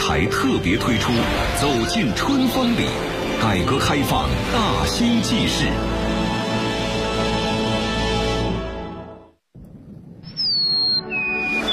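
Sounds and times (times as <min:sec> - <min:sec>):
music: 0:00.0 - 0:09.4, 0:10.8 - 0:11.7
speech: 0:00.1 - 0:06.0
Eurasian tree sparrow calls: 0:10.2 - 0:11.7.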